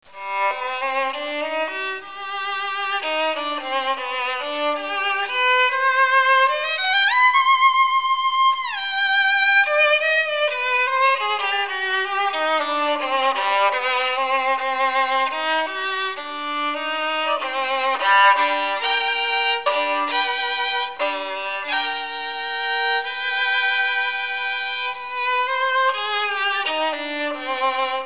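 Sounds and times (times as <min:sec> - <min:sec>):
violin: 0:00.0 - 0:28.0.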